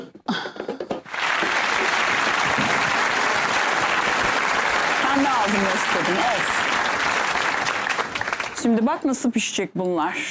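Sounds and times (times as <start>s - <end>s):
applause: 1.1s - 9.0s
speech: 5.2s - 6.6s, 8.6s - 10.2s.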